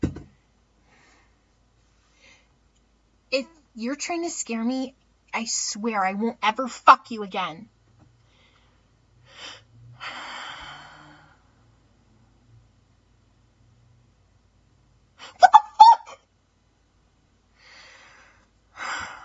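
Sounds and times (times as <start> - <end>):
breathing: 0.8 - 2.6, 8.2 - 11.7, 17.5 - 19.2
speech: 3.4 - 7.8.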